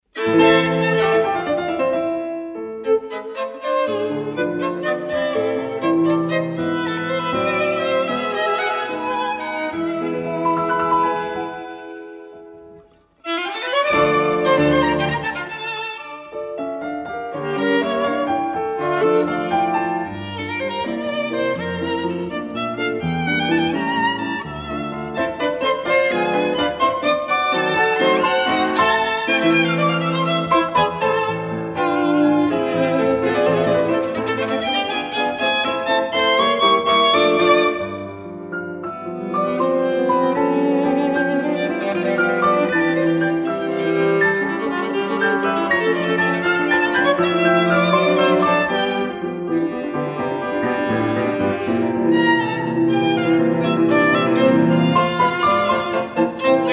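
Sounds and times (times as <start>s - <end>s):
musical trio: 0.1s - 56.7s.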